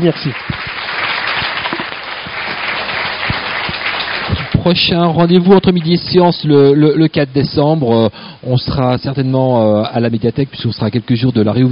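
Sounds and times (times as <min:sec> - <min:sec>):
speech: 0:00.0 - 0:00.5, 0:04.6 - 0:11.7
audience applause: 0:00.0 - 0:06.2.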